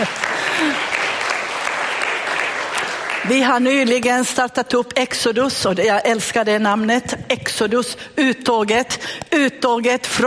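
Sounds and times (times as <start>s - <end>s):
audience applause: 0.0s - 3.4s
speech: 3.3s - 10.2s.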